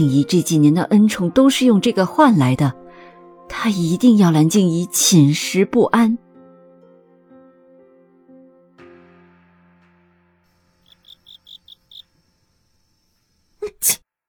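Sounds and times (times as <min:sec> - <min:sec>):
speech: 0:00.0 - 0:02.8, 0:03.5 - 0:06.2, 0:13.8 - 0:14.0
sneeze: 0:13.6 - 0:14.0.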